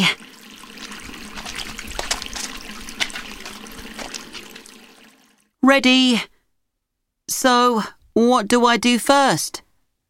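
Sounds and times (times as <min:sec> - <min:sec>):
tap water running: 0:00.0 - 0:05.6
speech: 0:05.7 - 0:06.3, 0:07.4 - 0:09.6.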